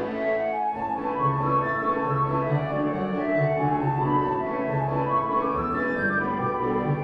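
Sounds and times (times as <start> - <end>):
solo flute: 0.2 - 7.0.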